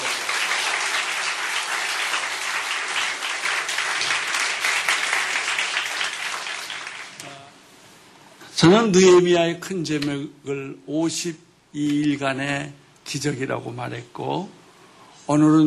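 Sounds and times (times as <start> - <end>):
audience applause: 0.0 - 7.2
speech: 8.6 - 14.6, 15.3 - 15.6.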